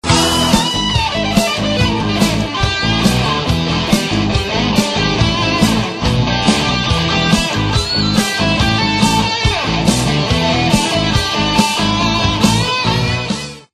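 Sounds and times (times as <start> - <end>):
guitar: 0.0 - 13.7.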